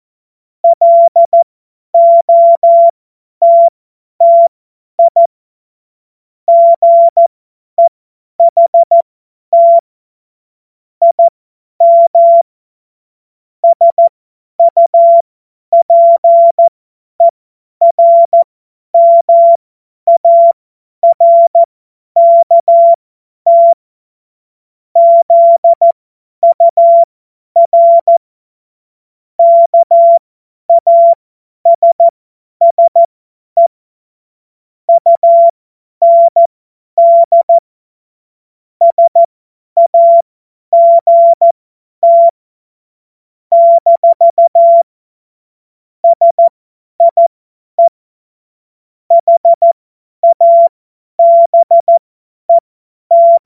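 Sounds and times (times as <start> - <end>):
CW Morse code beeps: 0.6 - 5.3, 6.5 - 9.8, 11.0 - 12.4, 13.6 - 23.8, 25.0 - 28.2, 29.4 - 33.7, 34.9 - 37.6, 38.8 - 42.3, 43.5 - 44.9, 46.0 - 48.0, 49.1 - 53.4.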